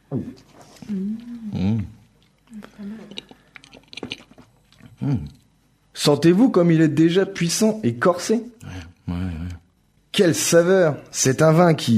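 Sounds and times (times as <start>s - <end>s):
speech: 0.1s - 1.6s, 5.0s - 5.3s, 6.0s - 8.6s, 10.2s - 11.9s
person sipping wine: 0.2s - 5.4s.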